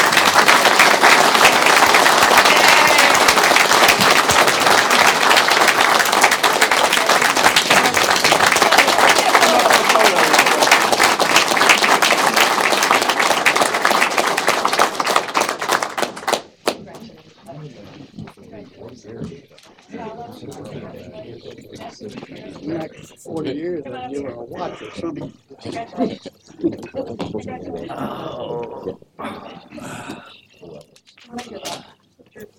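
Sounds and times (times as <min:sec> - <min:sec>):
audience applause: 0:00.0 - 0:16.8.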